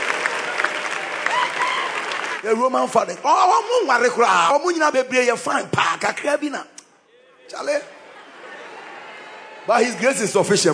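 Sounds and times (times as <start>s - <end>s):
audience clapping hands: 0.0s - 3.6s
speech: 2.4s - 6.8s, 7.5s - 8.0s, 9.6s - 10.7s
laughter: 7.2s - 10.2s.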